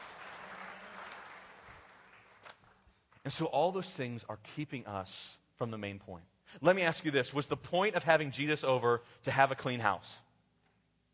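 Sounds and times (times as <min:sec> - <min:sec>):
audience applause: 0:00.0 - 0:02.8
speech: 0:03.3 - 0:10.2.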